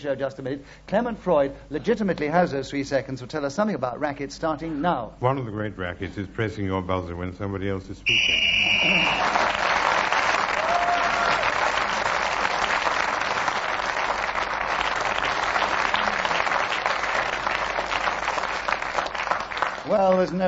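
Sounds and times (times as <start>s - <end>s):
speech: 0.0s - 9.6s, 20.0s - 20.4s
studio audience applause: 8.1s - 20.4s.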